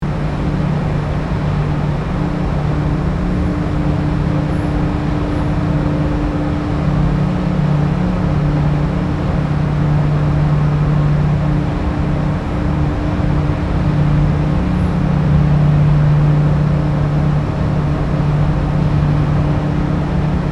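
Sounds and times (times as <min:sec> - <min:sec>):
boat: 0:00.0 - 0:20.4.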